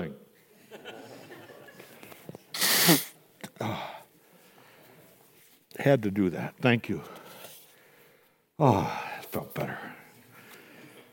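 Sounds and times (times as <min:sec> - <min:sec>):
laughter: 0:00.6 - 0:02.1
person blowing nose: 0:02.5 - 0:03.2
speech: 0:05.8 - 0:07.2, 0:08.6 - 0:09.9.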